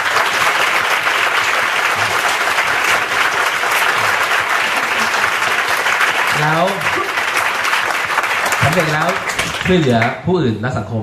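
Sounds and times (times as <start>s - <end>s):
crowd applauding: 0.0s - 10.2s
speech: 6.4s - 7.1s, 8.8s - 11.0s.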